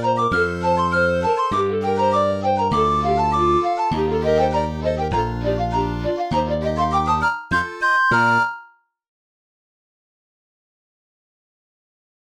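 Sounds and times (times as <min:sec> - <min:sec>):
fanfare: 0:00.3 - 0:08.7.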